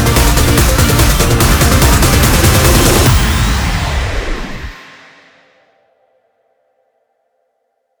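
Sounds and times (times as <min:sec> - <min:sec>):
145 bpm music track: 0:00.0 - 0:05.2.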